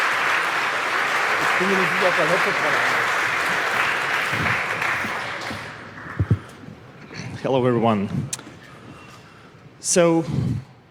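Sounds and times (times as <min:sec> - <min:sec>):
audience applause: 0:00.0 - 0:06.3
speech: 0:01.6 - 0:03.0, 0:07.5 - 0:08.4, 0:09.8 - 0:10.7.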